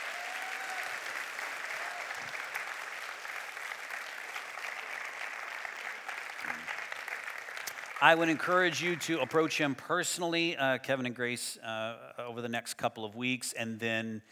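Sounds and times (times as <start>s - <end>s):
audience clapping: 0.0s - 10.0s
speech: 8.0s - 14.3s.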